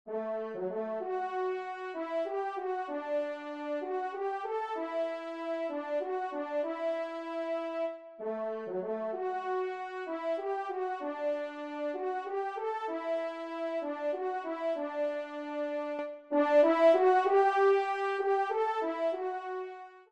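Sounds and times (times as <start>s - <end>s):
horn: 0.1s - 20.1s.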